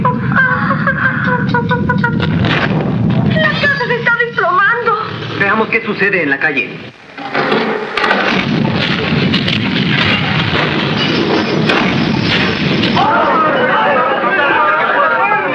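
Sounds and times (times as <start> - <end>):
laughter: 0.0 - 2.4, 13.0 - 15.5
huge tank rumbling, ground shaking: 1.9 - 13.0
speech: 5.5 - 7.0.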